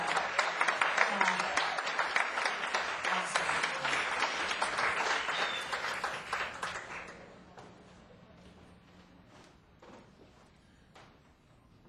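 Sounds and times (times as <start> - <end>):
audience clapping: 0.0 - 7.8.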